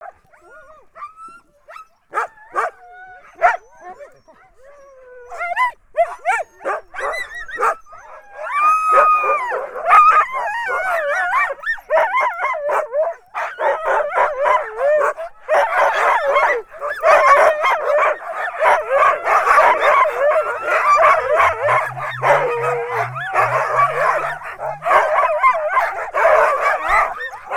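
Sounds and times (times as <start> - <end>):
huskies whining, yipping and howling: 0.0 - 27.5
low pulsing sound: 19.3 - 27.2.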